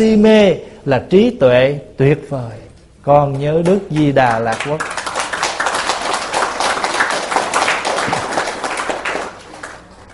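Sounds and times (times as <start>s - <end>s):
speech: 0.0s - 4.9s
audience applause: 4.0s - 10.1s.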